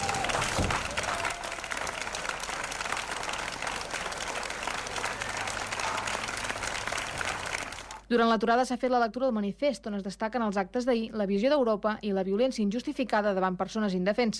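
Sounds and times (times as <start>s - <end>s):
loud crowd applause: 0.0s - 8.0s
speech: 8.1s - 14.3s.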